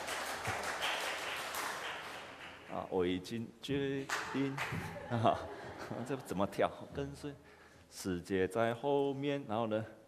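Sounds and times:
audience applause: 0.0s - 2.7s
speech: 2.8s - 10.0s
laughter: 4.7s - 6.8s.

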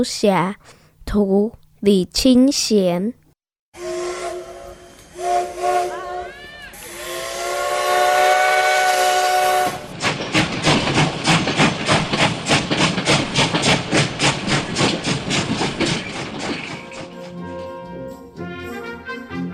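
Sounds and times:
speech: 0.0s - 3.2s
train horn blasts: 3.8s - 9.9s, 16.8s - 19.5s
train wheels clacking over track joints: 9.0s - 17.9s.

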